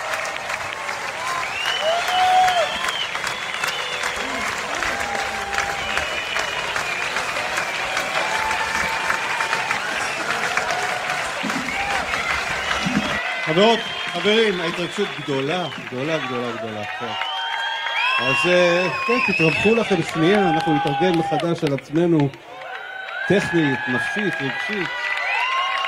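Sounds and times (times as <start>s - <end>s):
cheers: 0.0s - 25.8s
large crowd applauding: 0.0s - 25.8s
whistles: 1.3s - 4.6s, 5.2s - 7.4s, 12.4s - 15.8s, 17.1s - 20.0s
speech: 13.6s - 17.3s, 18.2s - 22.5s, 23.3s - 25.0s.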